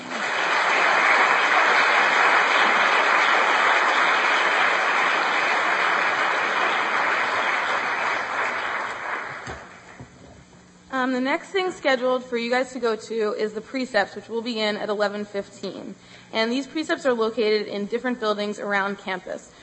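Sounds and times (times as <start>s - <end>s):
audience applause: 0.0s - 10.0s
speech: 11.2s - 19.6s.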